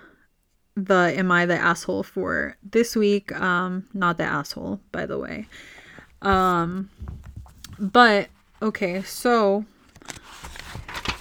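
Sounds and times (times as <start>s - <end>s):
speech: 0.8s - 7.2s, 7.8s - 10.4s
paper being handled: 5.4s - 11.1s.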